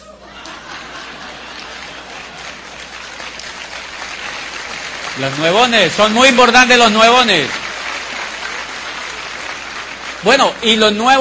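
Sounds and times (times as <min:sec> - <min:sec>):
faint laughter: 0:00.0 - 0:02.8
crowd applauding: 0:00.3 - 0:11.2
speech: 0:05.2 - 0:07.6, 0:10.2 - 0:11.2.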